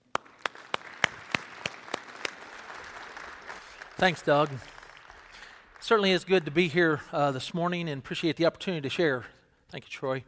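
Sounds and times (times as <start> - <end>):
sharp claps: 0.0 - 7.2
church congregation applauding a preacher at a morning service: 0.0 - 7.4
speech: 4.0 - 4.7, 5.8 - 10.2.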